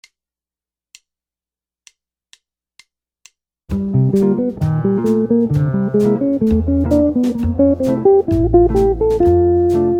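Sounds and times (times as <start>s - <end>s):
jazz guitar lick: 3.7s - 9.9s.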